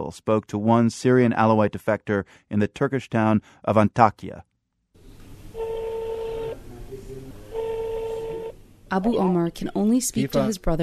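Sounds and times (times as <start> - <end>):
speech: 0.1 - 4.5, 8.9 - 10.8
low murmur: 5.2 - 9.1
telephone dialing tones: 5.6 - 6.6, 7.5 - 8.6.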